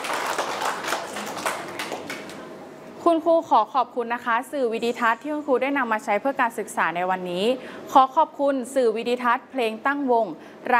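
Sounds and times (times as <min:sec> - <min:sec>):
children clapping: 0:00.0 - 0:02.4
speech: 0:03.0 - 0:10.7.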